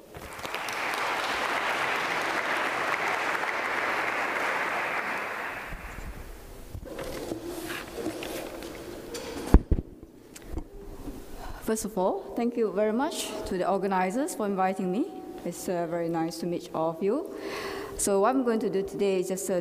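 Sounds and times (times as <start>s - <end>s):
audience applause welcoming a Buddhist monk speaker: 0.0s - 6.3s
quiet room noise: 0.0s - 13.6s
speech: 11.7s - 19.5s.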